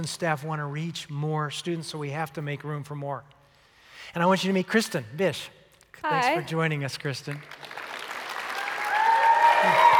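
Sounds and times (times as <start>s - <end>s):
speech: 0.0s - 3.4s, 4.0s - 7.8s, 9.6s - 9.8s
students clapping: 6.7s - 9.9s
students cheering: 8.0s - 9.9s.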